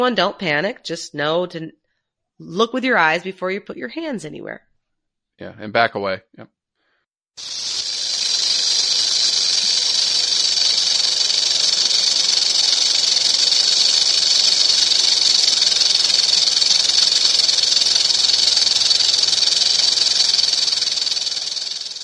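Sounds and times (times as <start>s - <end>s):
speech: 0.0s - 1.8s, 2.4s - 4.7s, 5.4s - 6.6s, 7.4s - 7.8s
rattlesnake sounding its warning rattle: 7.4s - 22.0s.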